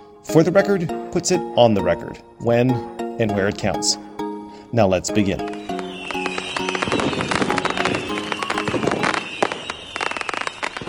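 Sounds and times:
speech: 0:00.2 - 0:05.7
fireworks popping: 0:05.4 - 0:10.8.

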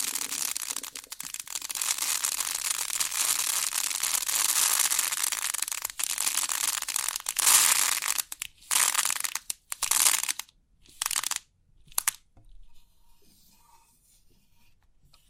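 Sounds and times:
pin art pressed and shuffled: 0:00.0 - 0:11.4, 0:12.0 - 0:12.2.

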